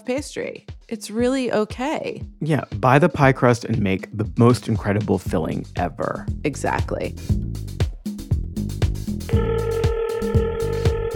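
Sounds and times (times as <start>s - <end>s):
speech: 0.0s - 7.8s
steady tone: 9.3s - 11.1s
telephone ringing on a radio call-in show: 9.3s - 11.1s.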